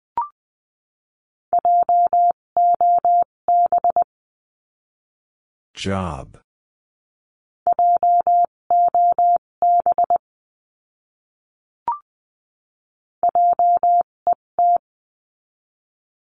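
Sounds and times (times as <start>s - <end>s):
Morse code beeps spelling out a word: 1.6s - 4.1s, 7.7s - 10.2s, 13.3s - 14.8s
speech: 5.8s - 6.4s.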